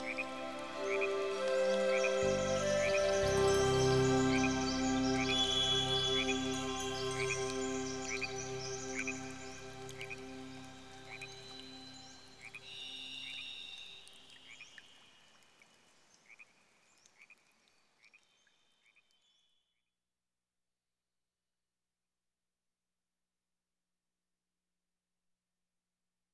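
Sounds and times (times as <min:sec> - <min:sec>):
Pacific rainforest ambience: 0:00.0 - 0:18.4.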